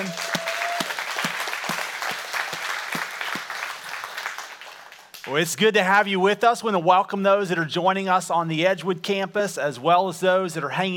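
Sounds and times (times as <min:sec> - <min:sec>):
church congregation applauding at an Easter service: 0:00.0 - 0:05.4
speech: 0:05.3 - 0:10.9.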